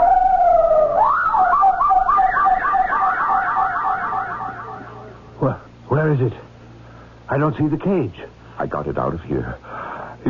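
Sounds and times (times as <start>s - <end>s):
parrot making a strange siren-like sound: 0.0s - 5.3s
speech: 7.3s - 10.2s.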